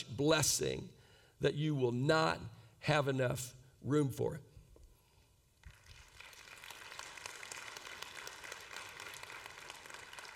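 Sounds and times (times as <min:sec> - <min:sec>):
speech: 0:00.2 - 0:04.5
audience clapping after a Bible verse: 0:05.6 - 0:10.3.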